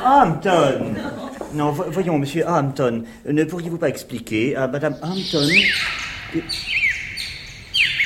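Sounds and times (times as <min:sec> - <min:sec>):
speech: 0:00.0 - 0:06.8
parakeets chattering in a greenhouse: 0:04.9 - 0:08.0.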